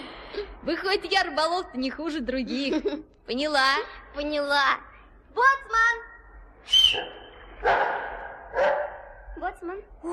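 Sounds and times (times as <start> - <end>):
speech: 0.7 - 10.1
St. Bernard dog barking with a whining edge: 7.0 - 9.2.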